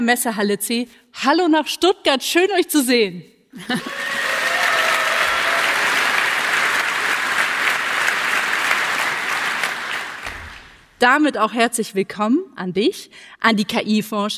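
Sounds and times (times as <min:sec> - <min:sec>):
speech: 0:00.0 - 0:04.4, 0:11.0 - 0:14.3
audience applause in hall: 0:03.8 - 0:10.8.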